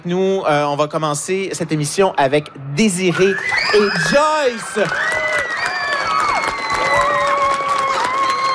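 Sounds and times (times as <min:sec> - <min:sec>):
speech: 0:00.0 - 0:05.2
cheering voices: 0:02.9 - 0:08.5
audience applauding three students: 0:03.4 - 0:08.5.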